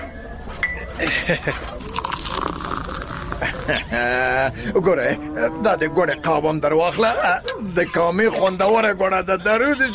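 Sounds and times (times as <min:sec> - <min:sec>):
speech: 0:01.0 - 0:01.8, 0:03.7 - 0:09.9
light clinks of the cup: 0:01.7 - 0:04.1
tea being poured into a cup: 0:01.8 - 0:04.5.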